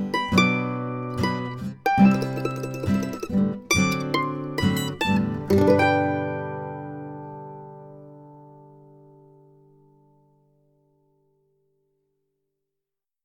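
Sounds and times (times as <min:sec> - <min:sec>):
wedding march on mandolin: 0:00.0 - 0:10.6.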